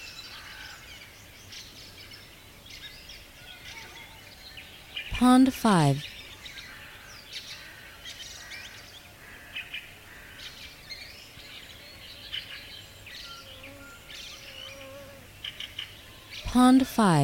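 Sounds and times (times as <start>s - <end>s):
several birds twittering and chirping: 0.0s - 5.2s, 6.0s - 16.5s
speech: 5.2s - 6.1s, 16.6s - 17.2s.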